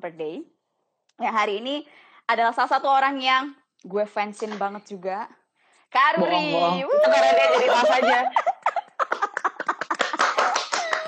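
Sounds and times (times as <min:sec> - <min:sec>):
speech: 0:00.0 - 0:00.6, 0:01.2 - 0:08.8
laughter: 0:06.9 - 0:11.0
person clapping at home: 0:09.0 - 0:11.0.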